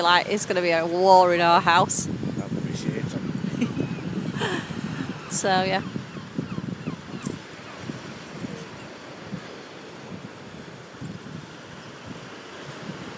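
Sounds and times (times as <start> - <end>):
speech: 0.0 - 2.2, 5.3 - 6.0
sea waves: 0.0 - 13.1
wind: 0.0 - 13.1.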